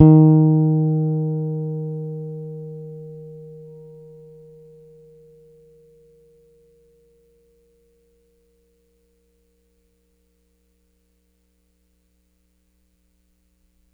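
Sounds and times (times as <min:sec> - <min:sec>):
Pedulla Thunderbass bass guitar hard note: 0:00.0 - 0:04.8.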